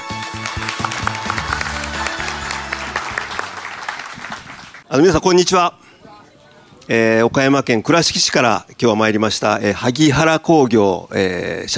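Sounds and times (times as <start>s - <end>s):
audience applause: 0.0s - 4.8s
speech: 4.9s - 5.8s, 6.9s - 11.7s.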